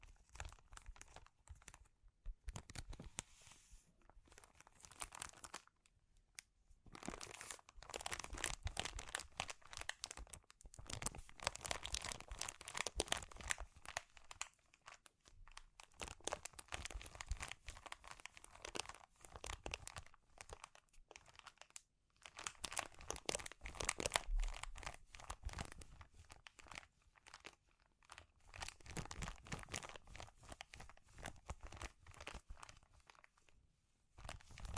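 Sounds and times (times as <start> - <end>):
crinkling plastic or foil being handled: 0.0 - 3.4, 4.0 - 34.7.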